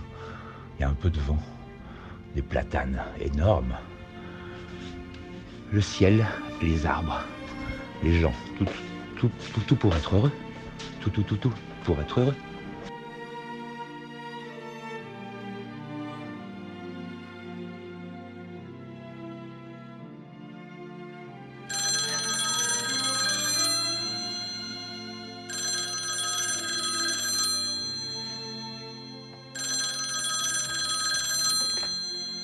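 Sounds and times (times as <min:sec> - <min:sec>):
soft instrumental music: 0:00.0 - 0:32.4
speech: 0:00.8 - 0:01.6, 0:02.3 - 0:03.9, 0:05.7 - 0:07.4, 0:08.0 - 0:12.5
telephone bell ringing before the Radio Parleur answering machine picks up: 0:21.7 - 0:32.4.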